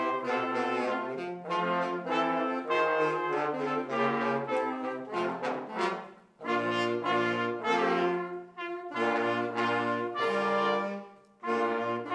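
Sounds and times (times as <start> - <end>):
junior brass ensemble playing variations on a folk song: 0.0 - 12.1.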